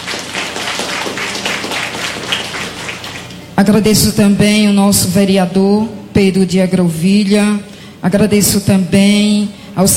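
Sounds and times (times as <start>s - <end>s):
crowd applause: 0.0s - 3.4s
speech: 3.6s - 9.9s.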